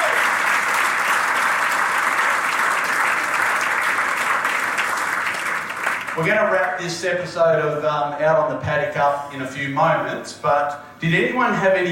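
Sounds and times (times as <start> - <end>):
audience applause at a women's country sports event: 0.0 - 6.8
speech: 6.2 - 11.9.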